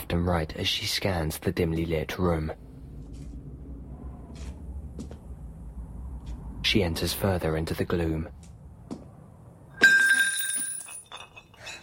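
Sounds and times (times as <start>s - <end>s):
speech: 0.1s - 2.6s, 6.8s - 8.4s
glass jar of coins hitting the floor: 9.8s - 11.8s.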